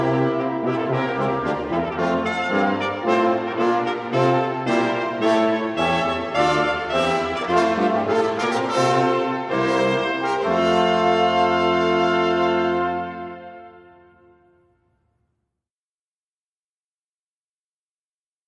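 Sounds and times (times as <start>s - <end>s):
brass sextet playing: 0.0s - 14.6s.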